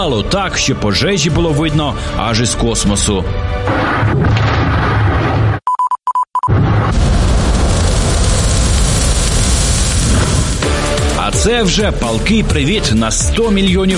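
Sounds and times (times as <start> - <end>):
speech: 0.0 - 4.5, 11.4 - 13.9
ammunition depot explosions: 3.7 - 5.6, 6.5 - 11.2.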